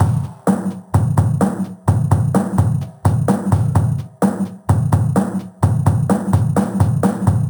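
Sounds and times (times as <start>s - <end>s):
drum loops: 0.0s - 7.4s.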